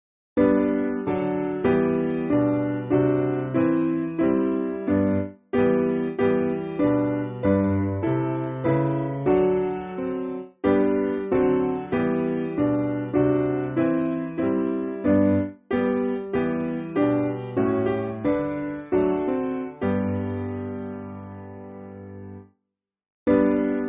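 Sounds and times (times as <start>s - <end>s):
piano: 0.4s - 22.6s, 23.3s - 23.8s.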